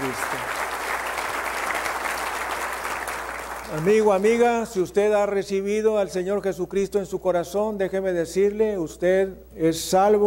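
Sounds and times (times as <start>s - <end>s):
audience applause: 0.0s - 4.4s
speech: 3.7s - 10.2s.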